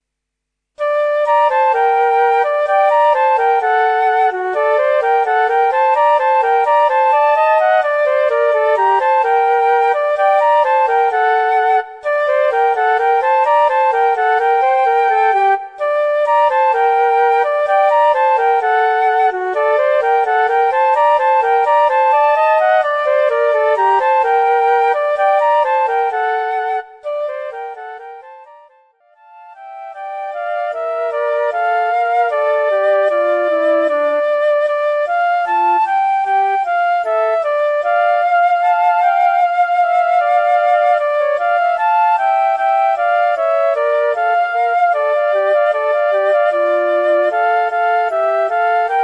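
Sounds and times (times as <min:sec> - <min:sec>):
klezmer flute duet: 0:00.8 - 0:49.0.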